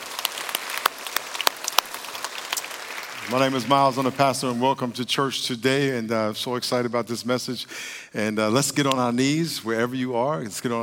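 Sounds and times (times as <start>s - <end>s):
church congregation clapping: 0.0s - 3.6s
speech: 3.3s - 10.8s.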